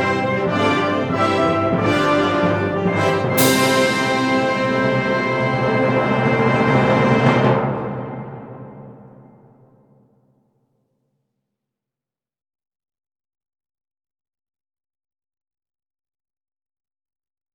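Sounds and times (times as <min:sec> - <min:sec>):
anthem: 0:00.0 - 0:09.8.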